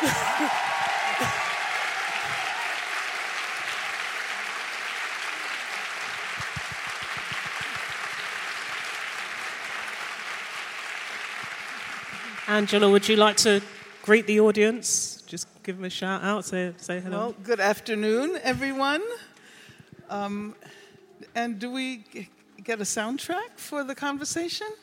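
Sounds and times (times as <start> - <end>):
audience round of applause: 0.0 - 14.0
speech: 12.5 - 19.3, 20.1 - 24.8.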